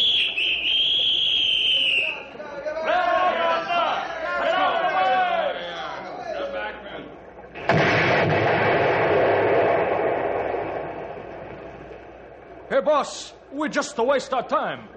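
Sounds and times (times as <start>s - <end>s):
warning whistle: 0.0s - 2.4s
people shouting excitedly: 2.7s - 5.6s
dynamite blast blowing up logs: 7.6s - 12.4s
speech: 12.8s - 14.9s.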